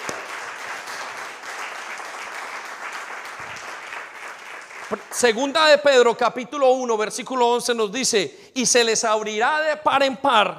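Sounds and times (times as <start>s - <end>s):
audience applauding: 0.0s - 5.6s
speech: 4.9s - 10.5s.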